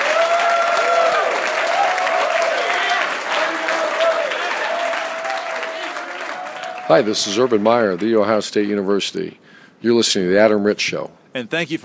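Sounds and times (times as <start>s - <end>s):
audience applause: 0.0s - 8.7s
speech: 6.9s - 11.8s.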